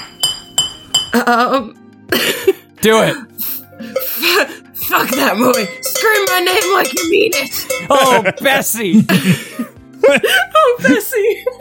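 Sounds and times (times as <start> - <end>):
cowbell being hit: 0.0 - 1.2, 4.9 - 8.7
speech: 1.2 - 3.4, 4.2 - 11.5
laughter: 7.6 - 11.5.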